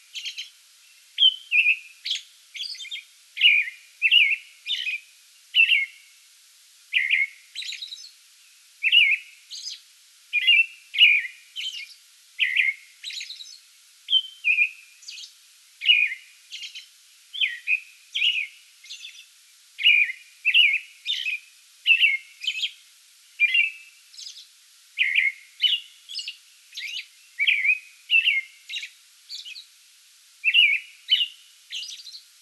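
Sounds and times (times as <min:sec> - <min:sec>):
American robin song: 0:00.0 - 0:06.2, 0:06.9 - 0:29.8, 0:30.4 - 0:32.3.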